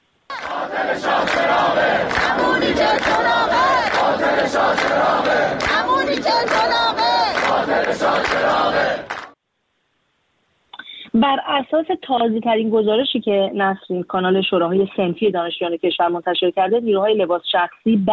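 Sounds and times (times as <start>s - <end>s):
University of Tehran engineering students chanting protest slogans in unison: 0.3s - 9.4s
speech: 11.2s - 18.1s.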